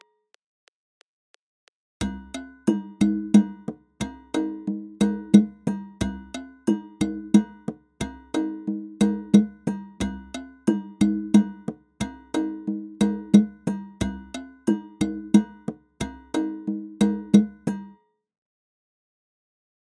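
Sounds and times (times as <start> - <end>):
African rhythm at 90 bpm: 2.0 - 17.9.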